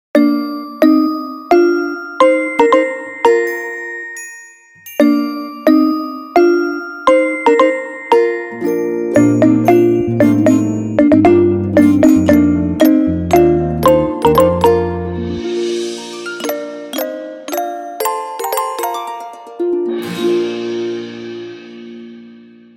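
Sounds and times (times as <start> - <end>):
ringtone music: 0.2 - 20.8.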